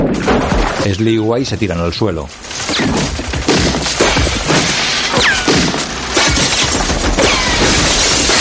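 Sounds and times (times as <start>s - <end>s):
bullets piercing walls with shattering and crashing impacts: 0.0s - 0.9s, 2.4s - 8.4s
speech: 0.9s - 3.4s
gunfire in a 1997 film-noir shootout: 2.6s - 8.4s.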